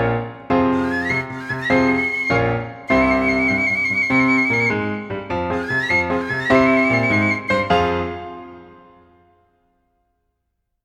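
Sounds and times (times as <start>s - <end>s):
two-part tarantella accompaniment: 0.2s - 8.9s.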